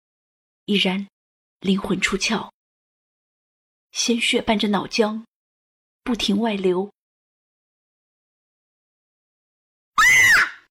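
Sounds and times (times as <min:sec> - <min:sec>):
speech: 0:00.7 - 0:02.5, 0:03.9 - 0:05.3, 0:06.0 - 0:07.0
sudden high-pitched scream: 0:10.0 - 0:10.6.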